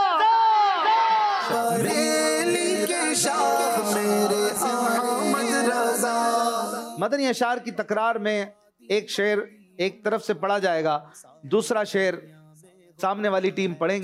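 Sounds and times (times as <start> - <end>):
crowd chanting a religious slogan at a team poetry-recitation contest: 0.0 - 7.0
person leading a religious slogan: 1.4 - 7.1
speech: 7.0 - 12.4, 13.0 - 14.0.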